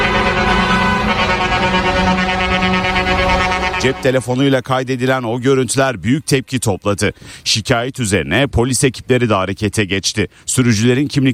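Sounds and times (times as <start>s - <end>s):
truck air horns honking from a convoy of lorries in a wedding procession: 0.0s - 4.6s
lorry engines rumbling: 0.0s - 11.3s
speech: 3.8s - 11.3s.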